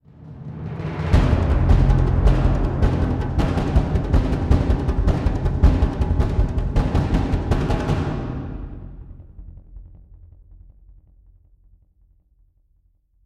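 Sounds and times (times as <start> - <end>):
string instrument: 0.1 - 9.1.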